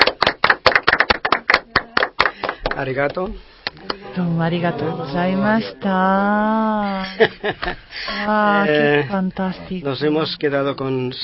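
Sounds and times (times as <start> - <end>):
applause: 0.0 - 3.2
speech: 2.8 - 11.2
laughter: 6.8 - 8.4.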